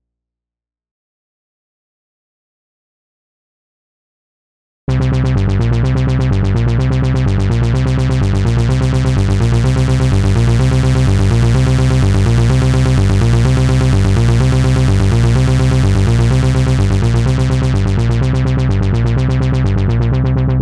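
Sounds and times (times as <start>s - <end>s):
basses: 4.9s - 20.5s.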